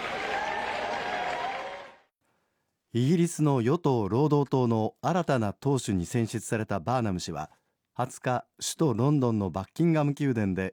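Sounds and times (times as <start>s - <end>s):
crowd applause outside Downing Street as Prime Minister Burnham arrives: 0.0s - 2.1s
speech: 2.9s - 10.7s.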